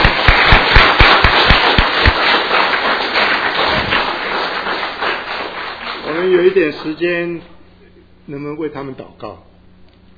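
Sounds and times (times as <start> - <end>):
audience applause: 0.0 - 7.2
speech: 6.5 - 7.5, 8.3 - 9.5.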